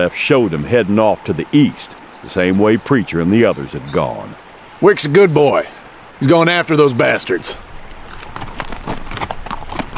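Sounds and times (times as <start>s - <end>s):
speech: 0.0s - 7.7s
horses walking, hooves clip-clopping: 6.7s - 9.9s.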